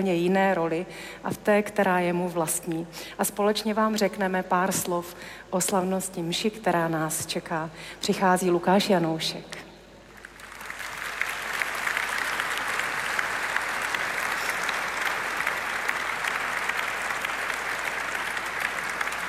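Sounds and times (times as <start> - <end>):
speech: 0.0 - 9.7
audience applause: 10.2 - 19.2.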